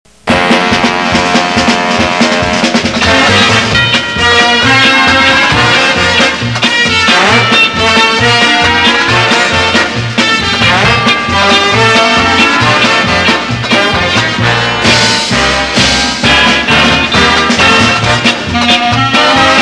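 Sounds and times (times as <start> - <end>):
instrumental theme music: 0.1 - 19.5.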